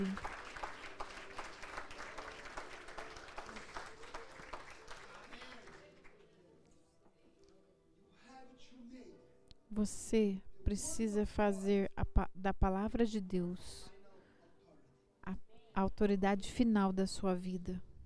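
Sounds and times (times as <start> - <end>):
speech: 0.0 - 0.3, 9.8 - 13.9, 15.3 - 17.9
audience applause: 0.0 - 6.2.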